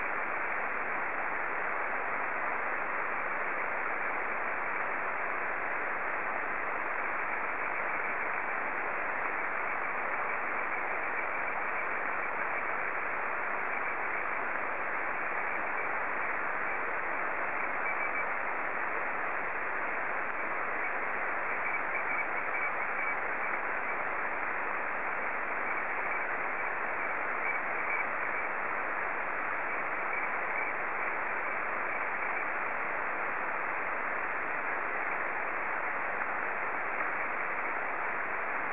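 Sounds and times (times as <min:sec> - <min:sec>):
SSTV signal in Martin 1 mode: 0:00.0 - 0:38.7.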